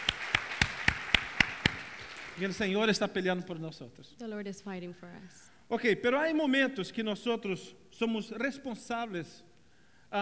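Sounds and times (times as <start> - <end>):
audience clapping in rhythm: 0.0 - 2.9
speech: 2.4 - 9.5.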